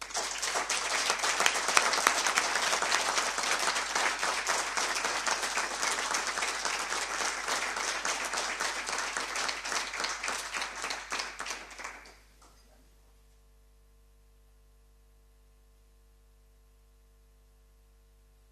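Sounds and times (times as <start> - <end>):
warm applause from an audience: 0.0 - 12.6.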